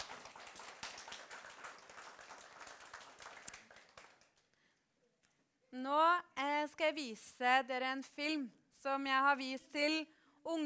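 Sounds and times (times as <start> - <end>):
audience applause: 0.0 - 4.5
speech: 5.8 - 10.6.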